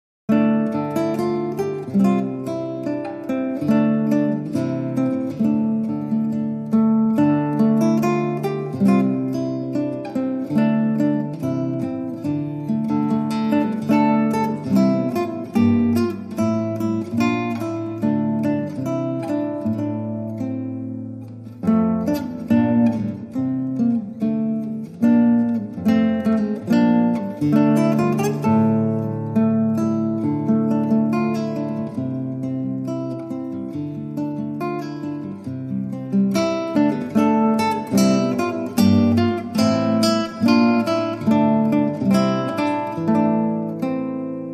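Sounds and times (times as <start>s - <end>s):
solo guitar: 0.3s - 44.5s.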